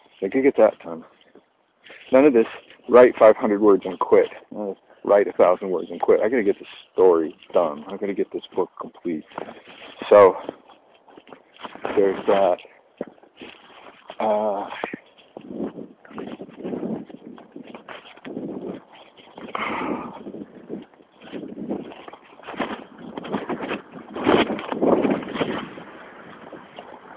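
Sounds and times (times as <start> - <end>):
speech: 0.2 - 1.2, 2.1 - 10.6, 12.0 - 13.6, 14.2 - 15.6
wind blowing past a microphone: 14.3 - 27.1.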